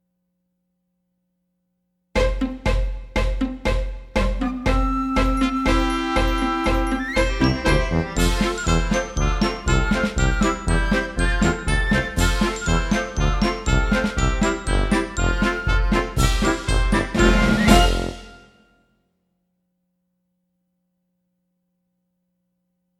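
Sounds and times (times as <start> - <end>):
German band instrumental: 2.2 - 18.6.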